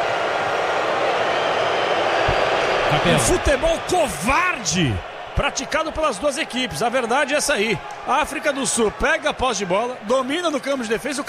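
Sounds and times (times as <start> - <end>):
stadium crowd booing: 0.0 - 11.2
speech: 2.9 - 11.2.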